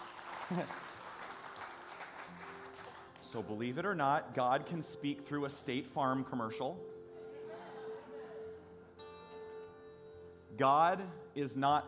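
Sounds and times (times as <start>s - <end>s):
audience applause: 0.0s - 3.2s
speech: 0.5s - 0.9s, 3.3s - 7.0s, 10.6s - 11.8s.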